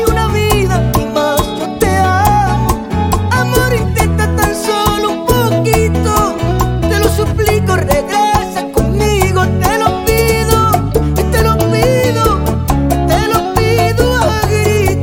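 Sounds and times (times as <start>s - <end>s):
percussive guitar: 0.0s - 15.0s.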